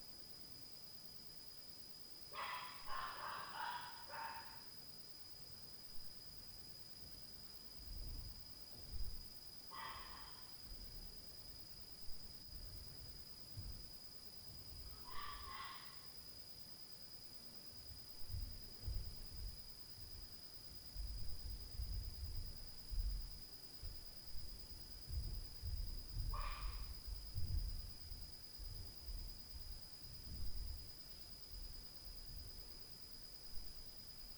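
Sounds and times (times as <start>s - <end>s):
night ambience: 1.8s - 5.0s, 6.8s - 34.3s
dog at night: 2.4s - 4.7s, 9.7s - 10.5s, 15.0s - 16.2s, 26.3s - 27.0s.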